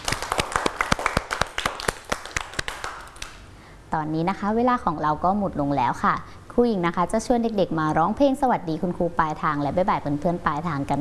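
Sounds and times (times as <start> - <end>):
children clapping for themselves: 0.0 - 3.4
speech: 3.9 - 10.9.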